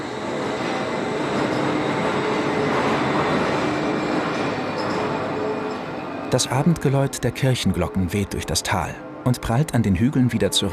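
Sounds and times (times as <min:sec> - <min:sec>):
suspended monorail train running on steel track: 0:00.0 - 0:10.7
faint metallic squeals: 0:00.1 - 0:07.0
speech: 0:06.3 - 0:10.7.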